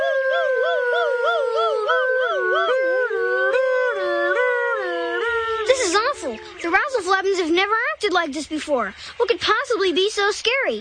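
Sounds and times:
voices imitating siren sounds: 0:00.0 - 0:07.1
speech: 0:06.7 - 0:10.7.

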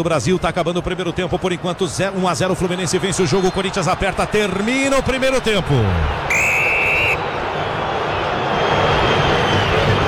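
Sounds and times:
speech: 0:00.0 - 0:06.6
stadium crowd booing: 0:03.1 - 0:10.0.

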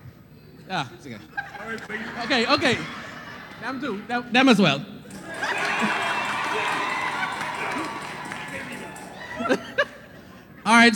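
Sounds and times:
speech: 0:00.7 - 0:04.9, 0:09.4 - 0:09.8, 0:10.7 - 0:10.9
laughter: 0:01.2 - 0:04.1, 0:05.1 - 0:10.7
large crowd roaring and cheering: 0:05.0 - 0:10.2
sharp shouts: 0:05.1 - 0:09.5.

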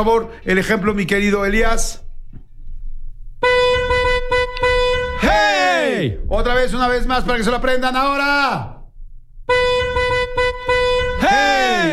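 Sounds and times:
speech: 0:00.0 - 0:02.0, 0:06.0 - 0:08.7, 0:11.2 - 0:11.9
car horn honking: 0:03.4 - 0:06.3, 0:09.5 - 0:11.9.

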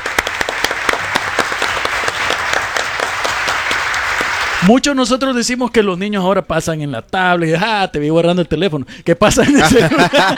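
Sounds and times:
audience applause: 0:00.0 - 0:04.7
speech: 0:04.6 - 0:10.3
laughter: 0:09.4 - 0:10.3.

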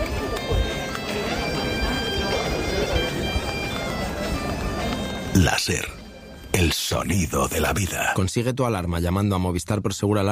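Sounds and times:
murmur of pilgrims arriving in a cathedral square: 0:00.0 - 0:08.2
speech: 0:05.4 - 0:06.0, 0:06.6 - 0:10.3.

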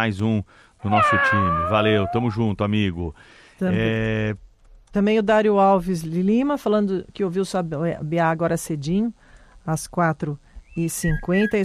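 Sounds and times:
speech: 0:00.0 - 0:11.6
cat meowing: 0:00.9 - 0:02.4.

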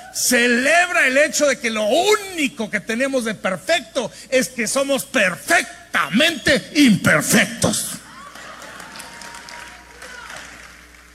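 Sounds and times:
speech: 0:00.2 - 0:08.0
sparse audience applause: 0:08.2 - 0:11.1.

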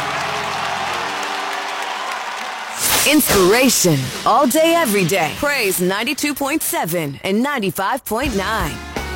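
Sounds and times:
crowd clapping hands: 0:00.0 - 0:02.9
speech: 0:03.1 - 0:08.9.

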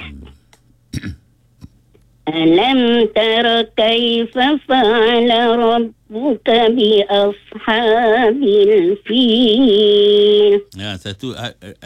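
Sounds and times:
throat clearing: 0:00.0 - 0:01.8
person coughing: 0:01.0 - 0:01.3
speech: 0:02.3 - 0:11.8.

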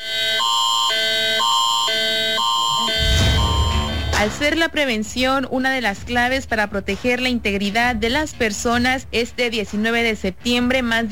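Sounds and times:
emergency alert tone on mobile phone: 0:00.0 - 0:04.6
rough burst of noise: 0:03.0 - 0:04.5
speech: 0:04.2 - 0:11.1.

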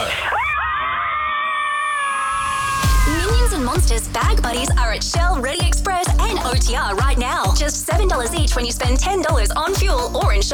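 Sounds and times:
group of women screaming together: 0:00.0 - 0:03.8
low thump: 0:02.8 - 0:10.4
speech: 0:03.7 - 0:10.5.

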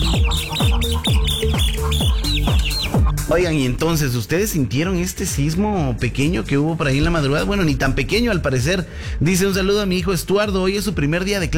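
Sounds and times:
chicks peeping: 0:00.0 - 0:03.2
speech: 0:03.3 - 0:11.5.

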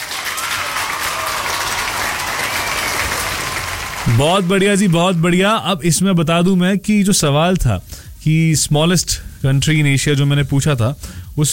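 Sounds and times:
applause: 0:00.0 - 0:05.6
speech: 0:04.1 - 0:11.5.

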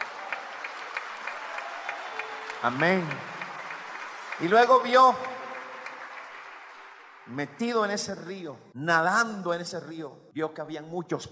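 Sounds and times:
church congregation applauding the Lord: 0:00.0 - 0:08.3
speech: 0:02.6 - 0:03.3, 0:04.4 - 0:05.4, 0:07.3 - 0:11.3.

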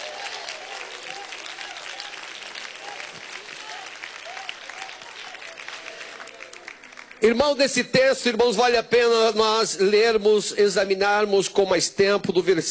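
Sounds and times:
audience applause: 0:00.0 - 0:07.8
speech: 0:07.2 - 0:12.6.

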